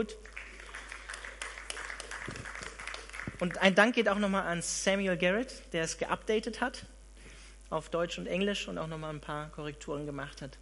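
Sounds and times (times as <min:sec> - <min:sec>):
speech: 0:00.0 - 0:00.4, 0:03.4 - 0:06.9, 0:07.7 - 0:10.6
audience clapping: 0:00.0 - 0:03.9.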